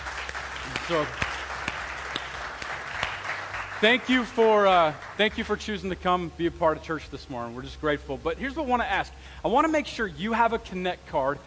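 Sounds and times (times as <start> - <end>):
church congregation clapping for visitors at a morning service: 0.0 - 6.0
speech: 0.9 - 1.3, 3.8 - 11.4.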